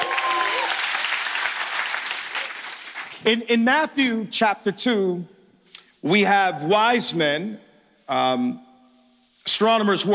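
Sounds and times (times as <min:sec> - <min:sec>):
church congregation applause at a Christmas Eve service: 0:00.0 - 0:03.3
speech: 0:03.2 - 0:05.4, 0:06.0 - 0:08.6, 0:09.5 - 0:10.1.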